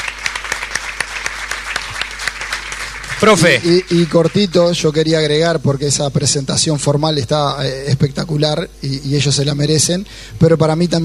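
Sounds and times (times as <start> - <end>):
applause: 0.0 - 4.8
speech: 3.2 - 11.0.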